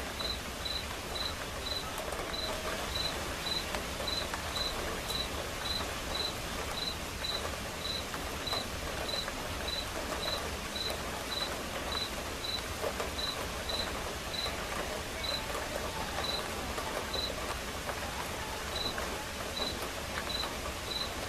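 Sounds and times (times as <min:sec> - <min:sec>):
rain hissing: 0:00.0 - 0:21.2
cricket chirping: 0:00.2 - 0:09.8.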